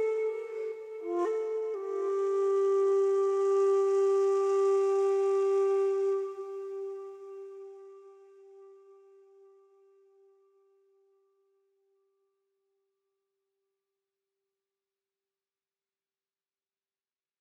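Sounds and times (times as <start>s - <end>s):
flute solo in a forest: 0.0s - 9.6s.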